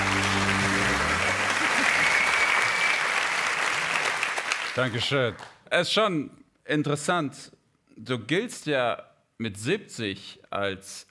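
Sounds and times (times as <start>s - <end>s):
audience applause: 0.0s - 5.6s
speech: 4.8s - 11.0s.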